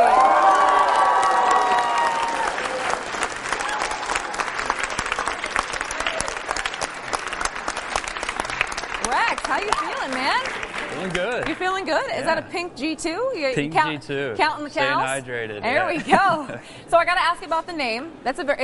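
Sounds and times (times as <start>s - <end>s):
audience whooping and cheering: 0.0s - 7.5s
audience applauding a guest: 0.0s - 11.8s
speech: 12.1s - 18.6s.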